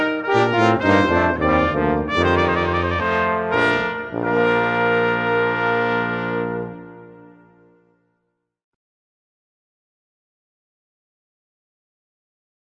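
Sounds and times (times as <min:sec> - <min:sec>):
brass melody: 0:00.0 - 0:08.0.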